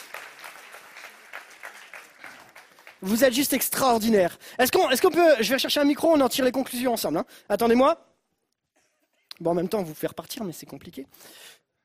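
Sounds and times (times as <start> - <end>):
audience applause: 0.0 - 3.8
speech: 3.0 - 8.1, 9.4 - 11.6.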